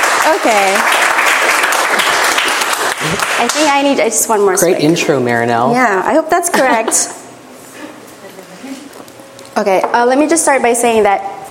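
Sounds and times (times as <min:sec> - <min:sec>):
audience applause: 0:00.0 - 0:03.7
speech: 0:00.2 - 0:01.2, 0:03.0 - 0:07.2, 0:09.6 - 0:11.4.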